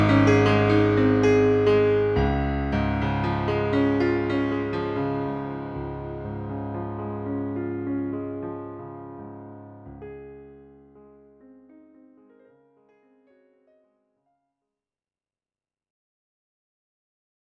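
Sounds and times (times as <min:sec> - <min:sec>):
classical piano on a Kurzweil PC361 digital piano: 0:00.0 - 0:13.8.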